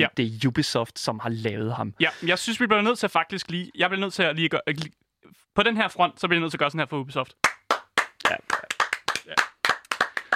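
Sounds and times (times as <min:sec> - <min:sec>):
speech: 0:00.0 - 0:05.0, 0:05.6 - 0:07.6, 0:08.3 - 0:09.5
person clapping: 0:07.4 - 0:10.3.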